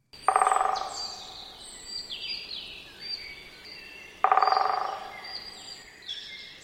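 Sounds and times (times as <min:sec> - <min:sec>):
great spotted woodpecker drumming briefly: 0:00.2 - 0:01.7, 0:04.2 - 0:05.8.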